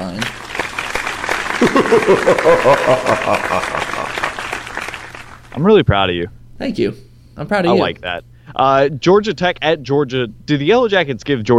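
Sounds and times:
clapping sound effect: 0.0 - 5.6
laughter: 1.6 - 4.6
speech: 1.7 - 3.9, 5.6 - 11.5.

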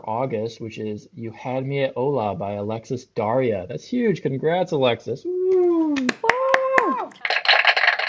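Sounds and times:
speech: 0.1 - 5.4
applause sound effect: 6.0 - 8.0.

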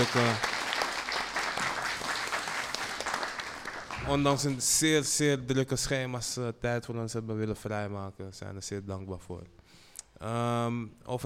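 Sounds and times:
speech: 0.0 - 0.5, 4.1 - 9.6, 10.2 - 11.2
audience applause: 0.0 - 4.6.

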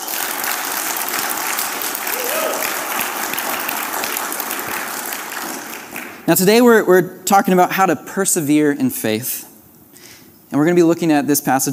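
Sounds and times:
audience applause: 0.0 - 6.3
speech: 6.3 - 9.4, 10.5 - 11.7.

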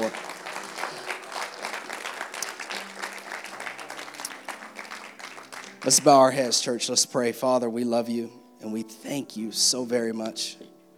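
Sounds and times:
audience clapping hands in praise: 0.0 - 6.9
speech: 5.8 - 10.7.

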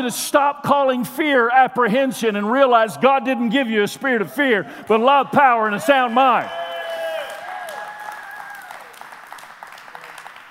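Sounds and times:
speech: 0.0 - 6.6
audience cheering: 4.1 - 10.5
audience clapping: 6.3 - 10.5.

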